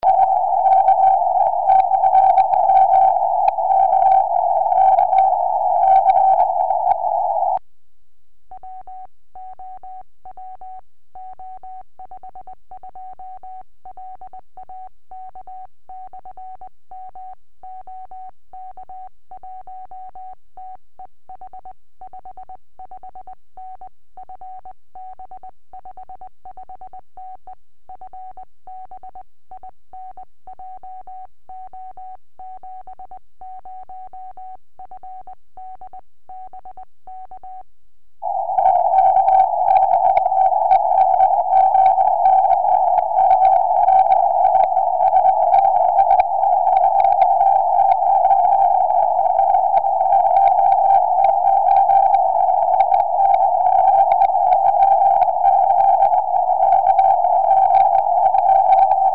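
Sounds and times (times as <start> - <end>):
70cm tropospheric radio signal: 0.0 - 7.6, 38.2 - 59.1.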